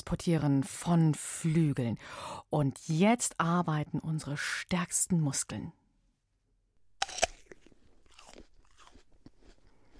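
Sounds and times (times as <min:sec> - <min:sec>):
speech: 0:00.1 - 0:05.8
someone biting into an apple: 0:06.9 - 0:09.9.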